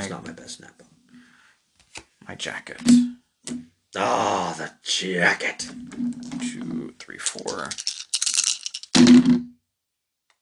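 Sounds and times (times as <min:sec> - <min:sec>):
speech: 0:00.1 - 0:00.9, 0:02.3 - 0:08.0
dice rattling and clattering: 0:07.2 - 0:09.0.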